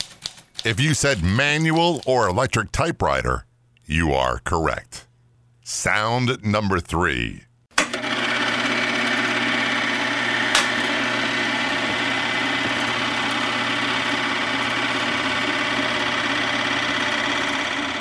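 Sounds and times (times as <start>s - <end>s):
speech: 0.6s - 5.1s, 5.7s - 7.5s
film projector running: 7.9s - 18.0s.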